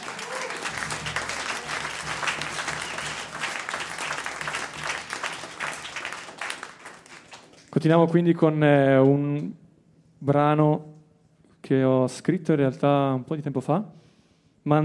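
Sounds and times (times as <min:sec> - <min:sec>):
audience applause: 0:00.0 - 0:07.7
speech: 0:07.8 - 0:09.6, 0:10.2 - 0:10.9, 0:11.7 - 0:14.0, 0:14.6 - 0:14.8.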